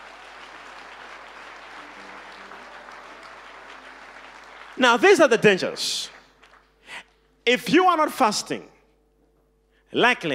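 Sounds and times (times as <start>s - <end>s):
people clapping hands: 0.0s - 7.3s
speech: 4.8s - 6.2s, 7.4s - 8.7s, 9.9s - 10.3s.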